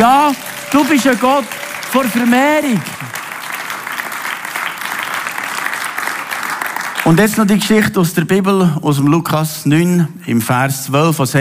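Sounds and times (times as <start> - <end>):
audience applause: 0.0 - 7.4
speech: 0.3 - 3.2, 7.1 - 11.3.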